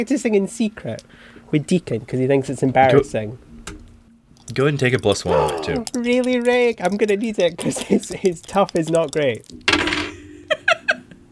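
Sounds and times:
speech: 0.0s - 3.5s, 4.5s - 9.7s
dice rolling on a table: 4.4s - 10.2s.

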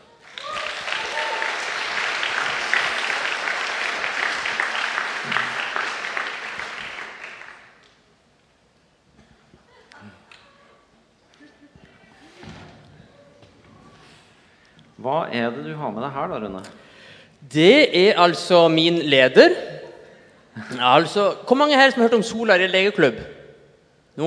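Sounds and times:
audience applause: 0.0s - 7.8s
speech: 15.1s - 16.9s, 17.5s - 19.6s, 20.8s - 23.3s.

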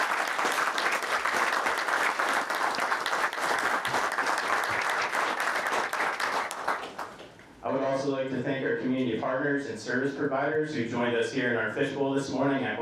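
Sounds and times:
audience applause: 0.0s - 7.3s
speech: 8.0s - 12.8s.

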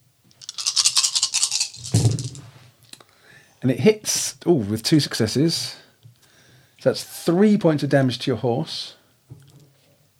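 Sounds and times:
handful of dice rolling: 0.4s - 2.4s
speech: 3.6s - 5.8s, 6.8s - 9.0s.

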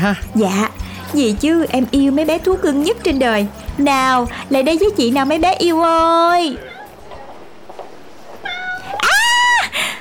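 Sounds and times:
speech: 0.0s - 6.7s
cat meowing: 6.5s - 7.5s, 8.3s - 9.7s.

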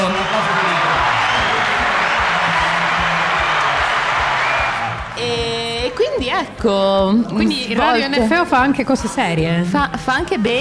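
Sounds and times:
applause: 0.0s - 5.2s
low rhythmic thumping: 0.9s - 8.6s
speech: 6.6s - 10.6s.

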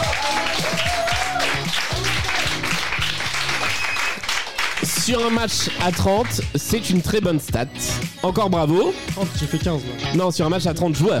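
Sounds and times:
live game show audience applause for the top-scoring player: 0.0s - 6.5s
speech: 5.1s - 11.1s.

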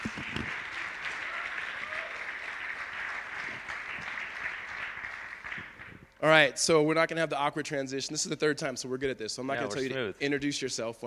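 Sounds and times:
church audience applause welcoming a speaker to the stage: 0.0s - 6.1s
speech: 6.2s - 11.0s.

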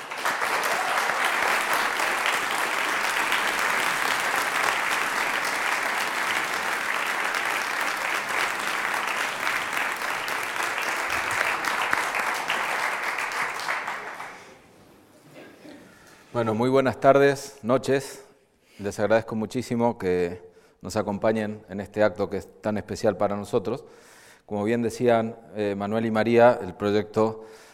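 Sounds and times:
audience applause: 0.0s - 14.6s
speech: 16.4s - 18.2s, 18.8s - 27.7s.

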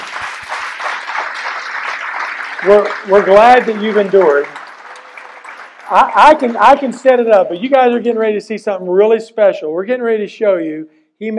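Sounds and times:
crowd applause: 0.0s - 7.2s
speech: 2.6s - 4.6s, 5.9s - 11.3s.

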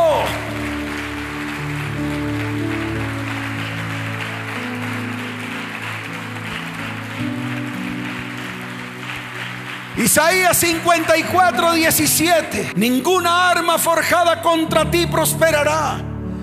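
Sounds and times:
audience applauding: 0.0s - 12.8s
speech: 10.1s - 16.1s.

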